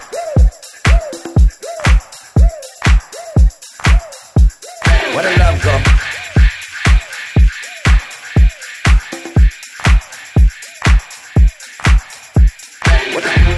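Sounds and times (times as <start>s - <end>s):
remixed music: 0.0s - 13.5s.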